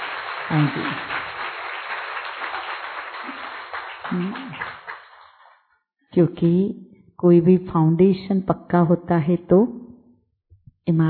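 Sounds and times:
audience clapping: 0.0 - 5.6
speech: 0.5 - 1.2, 4.1 - 4.8, 6.1 - 9.8, 10.8 - 11.0.

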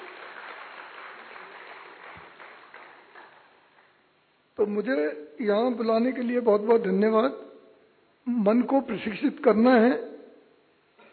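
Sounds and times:
audience applause: 0.0 - 3.9
speech: 4.6 - 7.5, 8.3 - 10.1.

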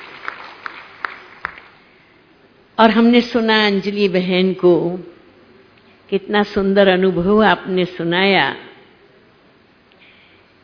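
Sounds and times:
audience applause: 0.0 - 1.8
speech: 2.8 - 5.1, 6.1 - 8.7.

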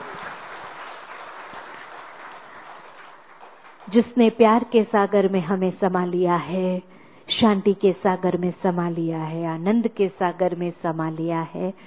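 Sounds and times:
audience clapping: 0.0 - 4.2
speech: 3.9 - 11.8.

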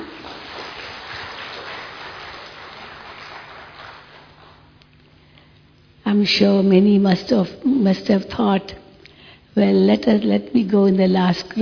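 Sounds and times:
audience clapping: 0.0 - 4.7
speech: 6.1 - 8.8, 9.6 - 11.6.

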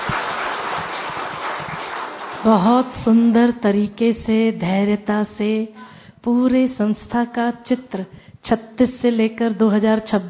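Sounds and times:
audience clapping to thank a speaker at a gathering: 0.0 - 2.6
speech: 2.4 - 10.2.

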